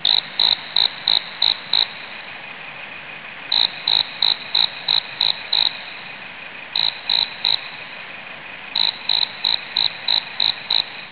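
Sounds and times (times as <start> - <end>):
crickets chirping: 0.0 - 2.2, 3.5 - 6.1, 6.7 - 7.9, 8.7 - 11.0.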